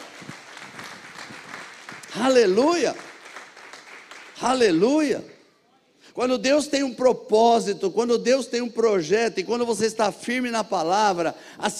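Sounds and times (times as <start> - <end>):
audience applauding: 0.0 - 4.8
speech: 2.2 - 3.1, 4.4 - 5.4, 6.2 - 11.7.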